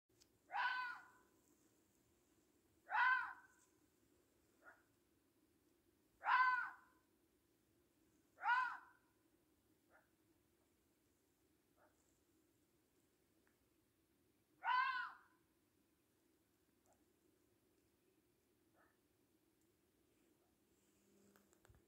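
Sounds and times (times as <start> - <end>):
red fox barking: 0.5 - 1.2, 2.8 - 3.6, 4.6 - 4.9, 6.2 - 6.9, 8.4 - 9.0, 14.6 - 15.3, 18.7 - 19.0.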